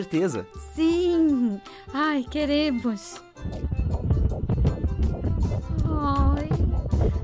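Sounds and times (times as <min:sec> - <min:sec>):
speech: 0:00.0 - 0:03.7, 0:07.0 - 0:07.2
fast fetal heartbeat on a doppler monitor: 0:03.4 - 0:07.2.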